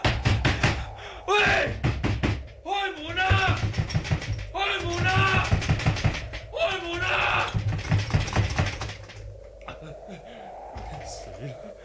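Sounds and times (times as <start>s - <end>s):
banging on a locked door: 0.0s - 9.2s.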